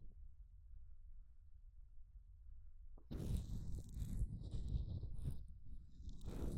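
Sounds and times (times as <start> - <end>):
ear cleaning sound effect: 3.1 - 6.5.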